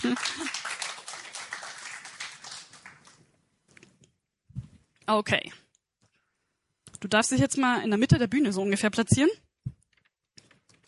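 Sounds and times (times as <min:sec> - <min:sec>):
speech: 0:00.0 - 0:00.6, 0:05.1 - 0:05.6, 0:07.0 - 0:09.4
audience applause: 0:00.0 - 0:03.2.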